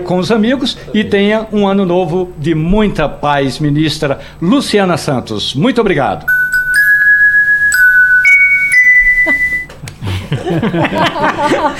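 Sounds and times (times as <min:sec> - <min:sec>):
speech: 0:00.0 - 0:06.4, 0:10.5 - 0:11.7
little bell jingle sound effect: 0:06.3 - 0:09.7
people laughing: 0:10.3 - 0:11.7.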